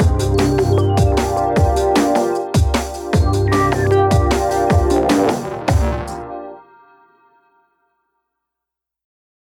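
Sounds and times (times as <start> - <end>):
electronic bird sound: 0.0 - 2.5, 3.1 - 6.3.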